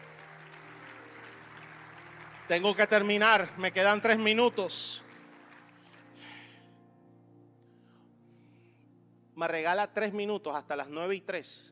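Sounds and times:
audience clapping: 0.0s - 6.6s
speech: 2.5s - 5.0s, 9.4s - 11.7s.

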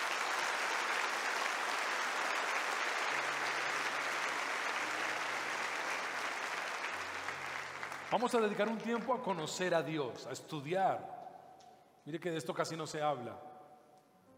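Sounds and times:
audience applauding: 0.0s - 9.7s
speech: 8.1s - 11.2s, 12.0s - 13.5s.

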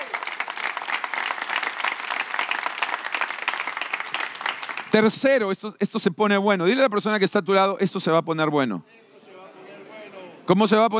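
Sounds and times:
audience applause: 0.0s - 5.0s
speech: 4.9s - 9.0s, 10.5s - 10.9s.

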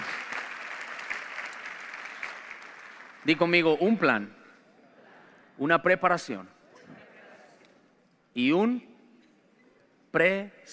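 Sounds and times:
audience applause: 0.0s - 3.7s
speech: 3.2s - 4.4s, 5.6s - 7.0s, 8.4s - 8.9s, 10.1s - 10.7s.

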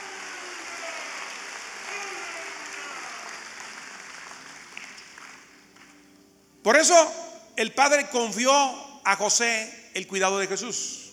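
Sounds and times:
audience applause: 0.0s - 5.9s
speech: 6.6s - 11.0s.

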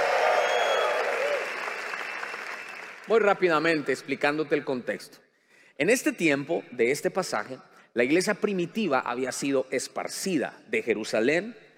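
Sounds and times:
audience applauding: 0.0s - 3.4s
speech: 3.1s - 5.2s, 5.8s - 11.6s.

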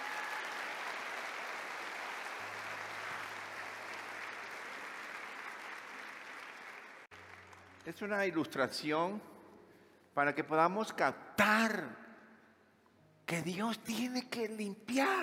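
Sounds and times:
audience applauding: 0.0s - 8.0s
speech: 7.9s - 9.3s, 10.2s - 12.0s, 13.3s - 15.2s.

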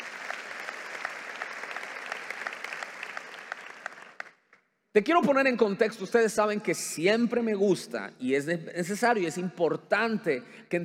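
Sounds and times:
audience applause: 0.0s - 4.4s
speech: 5.0s - 10.8s.

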